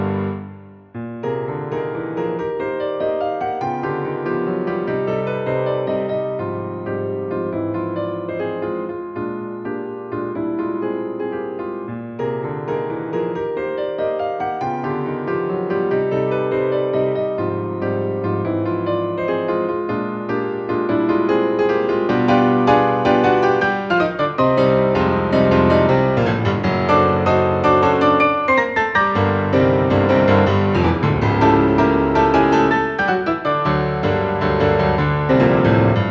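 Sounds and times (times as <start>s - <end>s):
piano sonata movement on piano: 0.0s - 36.1s.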